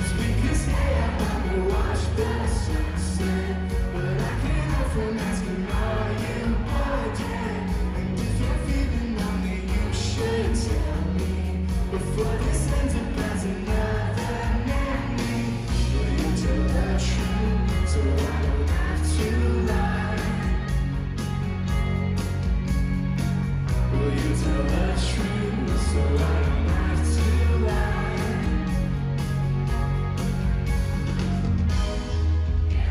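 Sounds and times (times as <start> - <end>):
crowd singing along and whooping: 0.0 - 21.9, 23.9 - 29.8, 32.0 - 32.8
live concert song with full band: 0.0 - 32.8.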